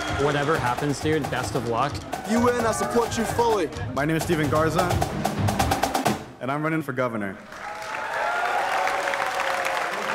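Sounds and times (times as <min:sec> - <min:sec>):
audience applause: 0:00.0 - 0:03.4, 0:07.4 - 0:10.1
speech: 0:00.2 - 0:05.3, 0:06.4 - 0:07.6.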